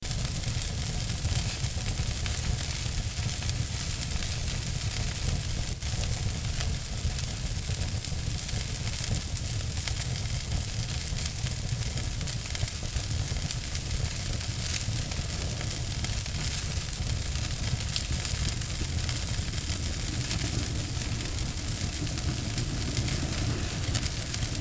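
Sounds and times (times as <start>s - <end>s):
fire: 0.0s - 24.6s.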